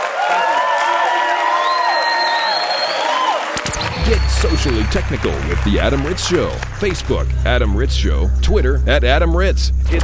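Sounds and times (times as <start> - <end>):
crowd whooping and shouting: 0.0 - 4.8
crowd applauding: 0.0 - 7.4
speech: 4.4 - 10.0.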